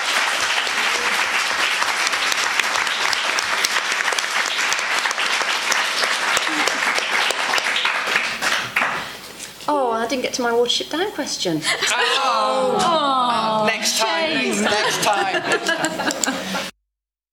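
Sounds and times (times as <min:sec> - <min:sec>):
crowd applause: 0:00.0 - 0:09.2, 0:11.8 - 0:16.7
laughter: 0:06.3 - 0:07.3, 0:11.6 - 0:16.8
speech: 0:10.1 - 0:16.6.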